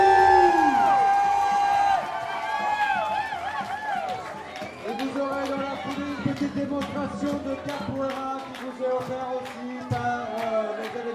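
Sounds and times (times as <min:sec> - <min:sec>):
crowd cheering and whooping: 0:00.0 - 0:05.1
scattered clapping: 0:00.0 - 0:11.1
speech: 0:06.6 - 0:11.1.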